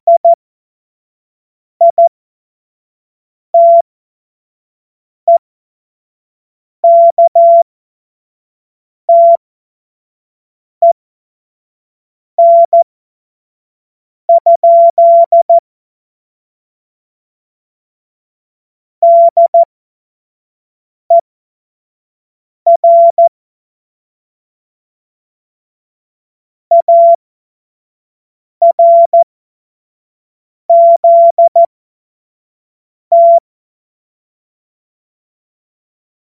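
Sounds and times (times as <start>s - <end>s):
CW Morse code beeps: 0.1s - 0.4s, 1.8s - 2.1s, 3.6s - 3.8s, 6.8s - 7.6s, 9.1s - 9.4s, 12.4s - 12.8s, 14.3s - 15.6s, 19.0s - 19.7s, 22.7s - 23.3s, 26.7s - 27.2s, 28.6s - 29.2s, 30.7s - 31.7s, 33.1s - 33.4s.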